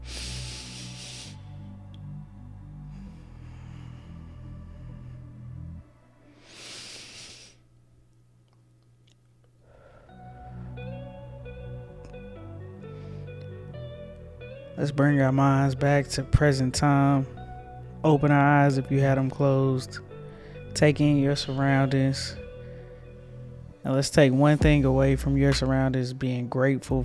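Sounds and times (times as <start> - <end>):
sustained tonal music: 0.0 - 6.7, 9.8 - 27.0
deep breathing: 0.0 - 7.7, 9.6 - 14.8, 19.9 - 23.8
speech: 14.8 - 17.4, 18.0 - 20.1, 20.8 - 22.4, 23.8 - 27.0.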